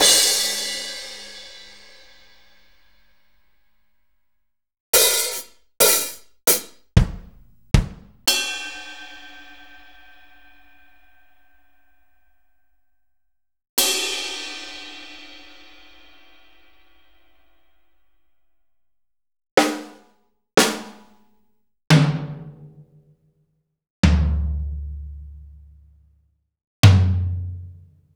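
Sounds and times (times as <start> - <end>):
Akai MPC500 room drums: 0.0 - 2.9, 5.0 - 10.0, 19.6 - 21.3, 21.9 - 23.2, 24.0 - 26.0, 26.8 - 28.1.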